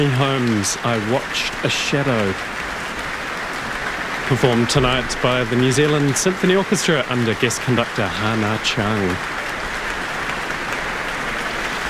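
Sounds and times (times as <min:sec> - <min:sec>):
speech: 0:00.0 - 0:02.7, 0:04.3 - 0:09.4
Auckland audience applause after an orchestra world premiere: 0:00.0 - 0:11.8.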